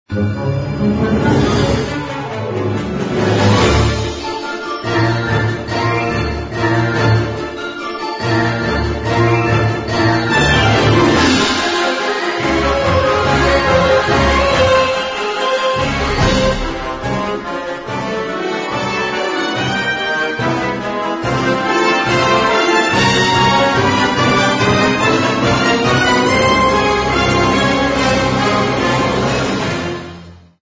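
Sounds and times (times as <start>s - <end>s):
music: 0.1s - 30.6s.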